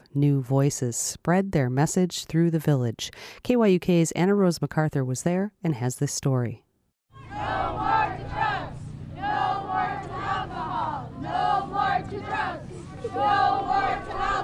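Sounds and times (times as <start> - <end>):
speech: 0.2 - 6.6
crowd gathering in front of the Queethluck post office: 7.1 - 14.4.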